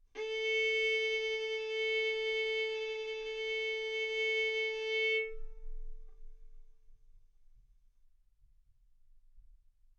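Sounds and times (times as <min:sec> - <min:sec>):
violin arco on A string: 0:00.2 - 0:05.6.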